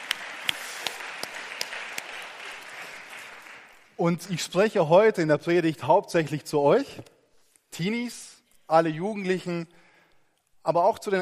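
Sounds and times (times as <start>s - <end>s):
audience applause: 0.0s - 4.0s
speech: 4.0s - 7.2s, 7.8s - 9.8s, 10.6s - 11.2s.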